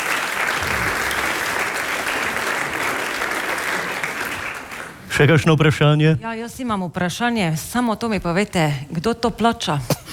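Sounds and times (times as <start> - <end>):
audience applause: 0.0 - 5.1
speech: 5.2 - 10.1.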